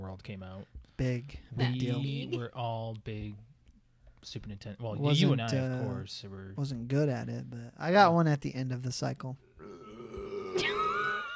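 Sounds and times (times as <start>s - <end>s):
speech: 0.2s - 3.5s, 4.2s - 9.7s
long low throaty burp: 9.6s - 11.3s.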